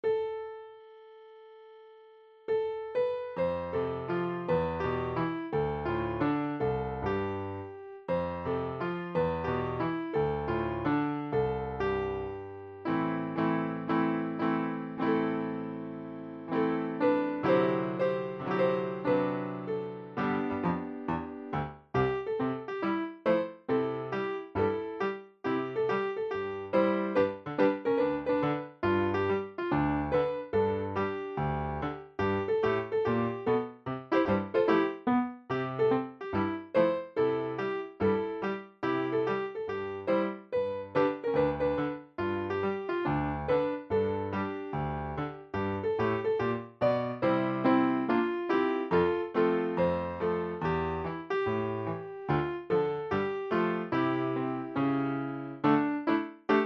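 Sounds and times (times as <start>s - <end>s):
instrumental music: 0.0s - 56.6s.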